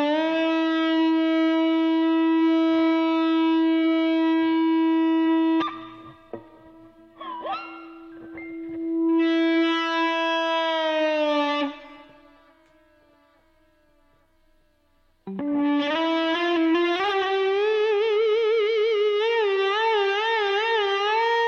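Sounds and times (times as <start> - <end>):
electric guitar with effects imitating a whale call: 0.0 - 21.4.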